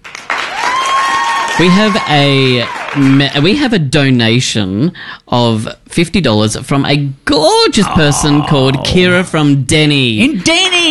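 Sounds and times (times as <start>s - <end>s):
applause sound effect from button: 0.0s - 3.4s
speech: 1.6s - 10.8s.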